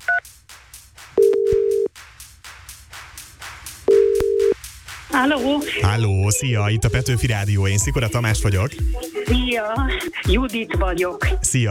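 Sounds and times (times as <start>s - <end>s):
telephone dial beep on a Hungarian radio show: 1.2s - 1.9s
telephone ringing tones: 3.9s - 4.6s
speech: 5.2s - 11.6s.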